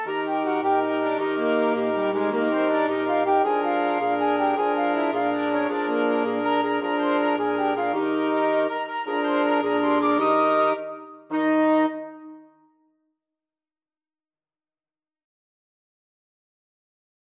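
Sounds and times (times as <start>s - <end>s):
flexible mixed ensemble of six players playing: 0.0s - 12.3s.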